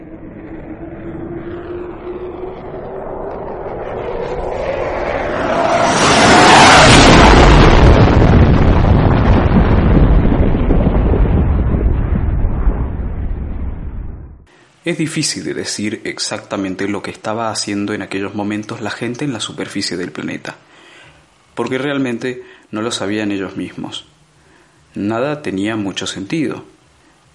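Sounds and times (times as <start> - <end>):
spaceship roaring past: 0.0 - 8.3
sonic boom: 0.0 - 14.5
speech: 14.9 - 20.7, 21.6 - 24.1, 25.0 - 26.8.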